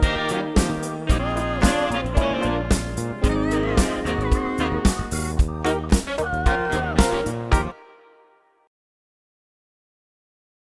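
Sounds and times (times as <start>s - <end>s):
soul band playing: 0.0s - 7.9s
person singing vocals: 0.0s - 8.1s.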